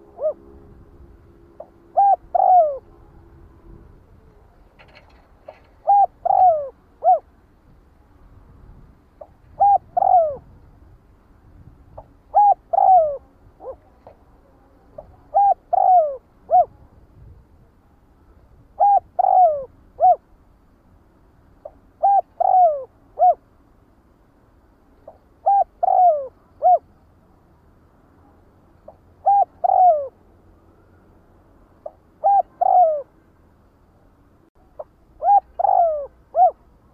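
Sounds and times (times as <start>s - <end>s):
spotted dove cooing: 0.0s - 0.7s, 1.4s - 7.3s, 9.2s - 10.6s, 11.9s - 16.8s, 18.8s - 20.2s, 21.6s - 23.4s, 25.0s - 26.9s, 28.8s - 30.2s, 31.8s - 33.2s, 34.6s - 36.9s
faint low rumble: 0.0s - 36.9s.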